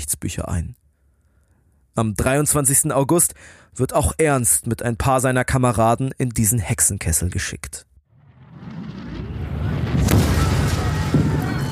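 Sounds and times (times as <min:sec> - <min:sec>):
speech: 0:00.0 - 0:00.8, 0:02.0 - 0:07.9
artillery fire rumbling and thundering: 0:08.1 - 0:11.6.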